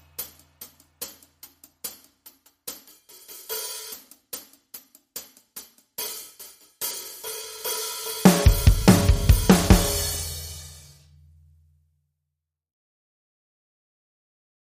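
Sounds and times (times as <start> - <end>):
drums: 0.0 - 11.5
bass: 8.4 - 11.7.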